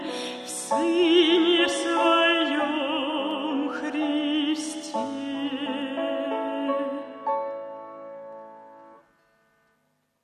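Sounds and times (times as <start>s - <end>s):
sacred singing: 0.0s - 7.4s.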